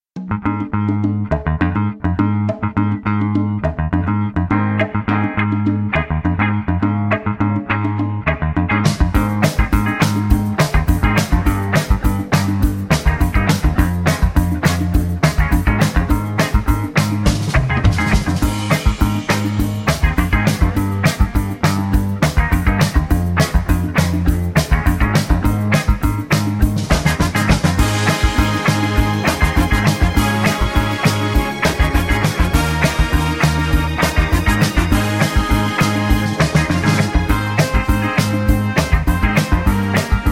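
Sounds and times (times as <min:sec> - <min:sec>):
backing track without backing vocals: 0:00.2 - 0:40.2.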